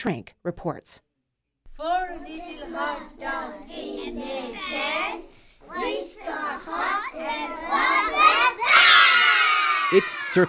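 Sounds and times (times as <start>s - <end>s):
speech: 0.0s - 1.1s, 1.8s - 8.8s, 9.9s - 10.4s
preschool children chanting a rhyme in chorus: 1.8s - 10.4s.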